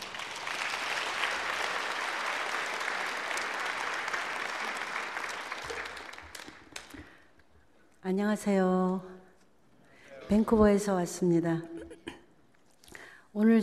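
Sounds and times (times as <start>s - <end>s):
welcoming applause from audience: 0.0s - 7.2s
speech: 8.1s - 9.1s, 10.3s - 11.7s, 13.4s - 13.6s.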